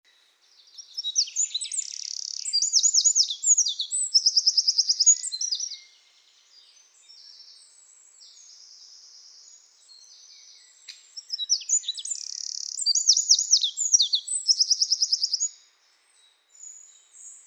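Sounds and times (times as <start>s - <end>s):
Eurasian wren song with rattling trills: 0.6s - 5.9s, 11.2s - 15.5s.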